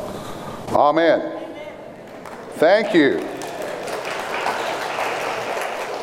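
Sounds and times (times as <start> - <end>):
speech: 0.8 - 1.3, 2.6 - 3.3
audience applause: 2.1 - 6.0.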